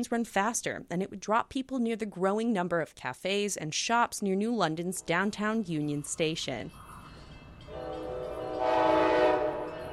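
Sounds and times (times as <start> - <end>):
speech: 0.0 - 6.8
train passing rumble: 6.7 - 9.9
train horn: 7.7 - 9.9.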